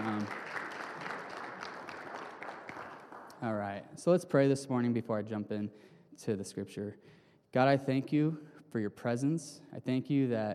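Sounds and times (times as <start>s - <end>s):
audience clapping: 0.0s - 3.8s
speech: 3.4s - 10.5s.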